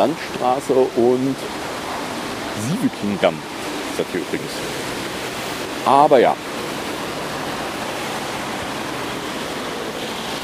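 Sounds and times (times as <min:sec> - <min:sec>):
speech: 0:00.0 - 0:01.6, 0:02.6 - 0:05.0, 0:05.8 - 0:06.5
loud street traffic roar: 0:00.0 - 0:10.4.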